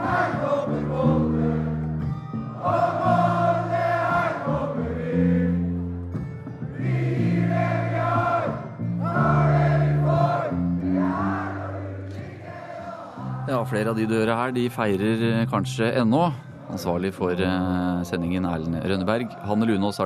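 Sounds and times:
celebrating crowd at victory party singing and chanting: 0.0s - 5.9s, 6.6s - 14.8s, 18.2s - 20.0s
speech: 13.7s - 20.0s.

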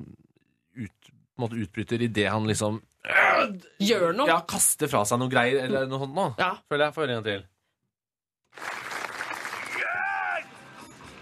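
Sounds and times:
speech: 0.8s - 7.5s
audience applause and clapping: 8.5s - 10.4s.

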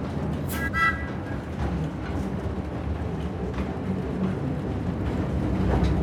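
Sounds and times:
narrow-gauge train rumbling: 0.0s - 6.0s
metallic squeal: 0.5s - 1.4s.

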